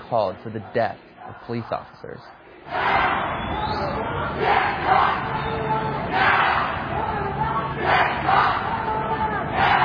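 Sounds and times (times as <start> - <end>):
street protesters chanting and yelling: 0.0 - 9.8
speech: 0.1 - 6.3.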